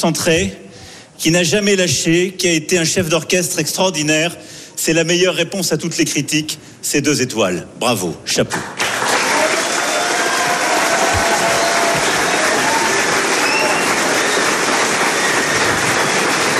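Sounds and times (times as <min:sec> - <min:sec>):
speech: 0:00.0 - 0:00.6, 0:01.2 - 0:08.9
applause in a reception hall: 0:08.5 - 0:16.5.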